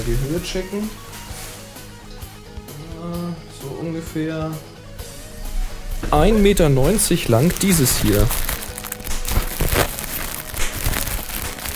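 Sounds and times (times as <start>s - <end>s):
speech: 0.0s - 1.2s, 3.0s - 4.7s, 6.0s - 8.5s
bubble wrap being handled and crinkled: 6.5s - 11.7s.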